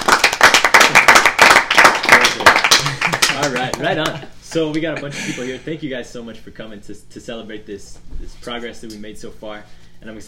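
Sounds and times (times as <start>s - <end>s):
audience applause at a one-year anniversary finale: 0.0s - 3.8s
speech: 3.4s - 10.2s.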